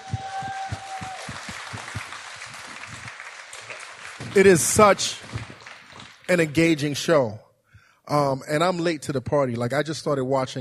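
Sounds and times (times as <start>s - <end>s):
live audience applause: 0.0s - 6.9s
speech: 4.4s - 5.2s, 6.3s - 7.4s, 8.1s - 10.5s.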